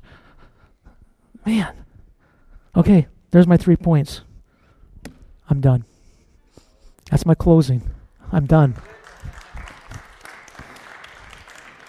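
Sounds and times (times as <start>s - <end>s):
speech: 1.4s - 1.9s, 2.8s - 4.3s, 5.5s - 5.9s, 7.1s - 9.0s
church audience clapping: 8.4s - 11.8s.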